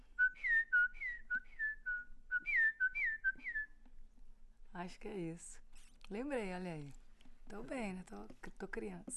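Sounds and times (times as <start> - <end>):
person whistling imitation of sabiá thrush song: 0.2 - 3.8
speech: 4.8 - 9.1.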